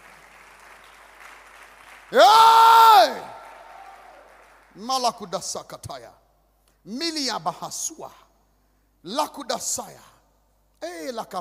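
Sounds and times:
audience clapping: 0:00.0 - 0:04.8
speech: 0:02.1 - 0:03.3, 0:04.8 - 0:06.2, 0:06.8 - 0:08.2, 0:09.0 - 0:10.1, 0:10.8 - 0:11.3.

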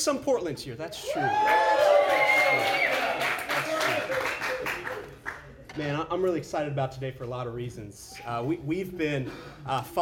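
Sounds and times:
speech: 0:00.0 - 0:02.9, 0:05.8 - 0:09.9
audience clapping: 0:01.3 - 0:05.7.

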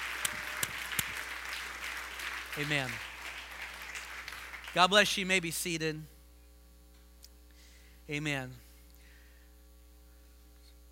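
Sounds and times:
audience clapping hands: 0:00.0 - 0:05.4
speech: 0:02.6 - 0:03.1, 0:04.7 - 0:06.1, 0:08.1 - 0:08.6.

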